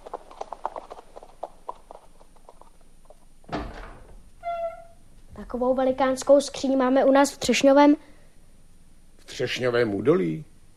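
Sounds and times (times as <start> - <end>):
horse hooves clip-clopping as it's led: 0.0 - 3.5
speech: 5.5 - 8.1, 9.4 - 10.5.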